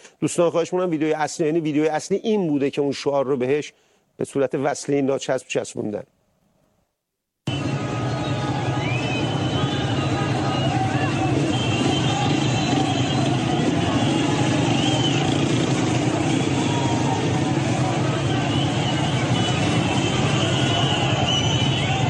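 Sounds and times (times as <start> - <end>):
speech: 0.2 - 6.2
murmur of a gathering protest crowd: 7.9 - 22.0.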